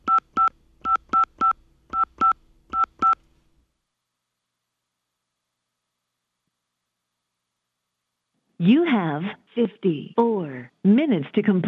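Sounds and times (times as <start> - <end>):
telephone keypad tones entering a number: 0.0 - 3.2
speech: 8.6 - 11.6.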